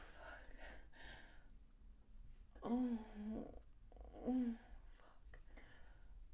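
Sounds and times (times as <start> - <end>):
moaning: 2.6 - 4.7.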